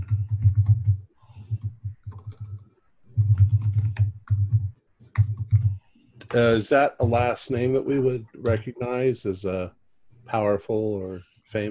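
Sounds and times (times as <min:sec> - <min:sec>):
typing a chat message on a computer keyboard: 0:00.0 - 0:05.8
speech: 0:06.3 - 0:11.6.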